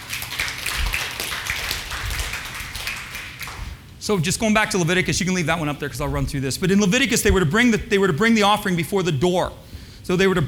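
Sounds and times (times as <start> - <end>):
crowd clapping: 0.0 - 4.0
speech: 4.0 - 10.4.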